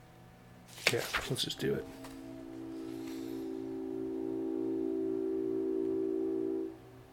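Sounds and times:
speech: 0.9 - 2.0
train passing: 1.6 - 7.1.

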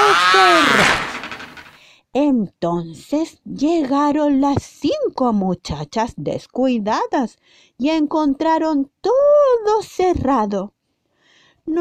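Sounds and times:
door creaking shut with thud: 0.0 - 1.8
speech: 2.1 - 10.8.

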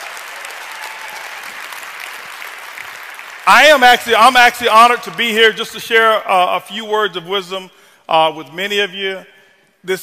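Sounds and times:
audience applause: 0.0 - 3.8
speech: 3.5 - 10.0.

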